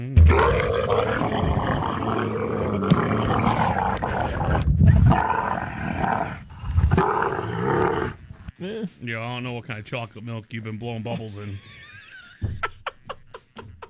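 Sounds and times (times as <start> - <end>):
camel mating noises: 0.0 - 8.5
speech: 9.0 - 11.8
laughter: 11.1 - 13.8.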